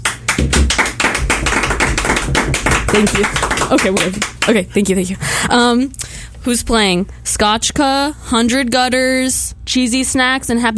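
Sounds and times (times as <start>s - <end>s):
audience clapping at a gig: 0.0s - 5.1s
speech: 2.9s - 10.7s.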